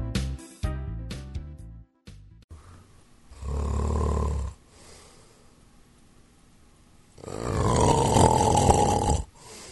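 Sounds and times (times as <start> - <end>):
man snoring while asleep: 3.3 - 4.9, 7.2 - 9.6.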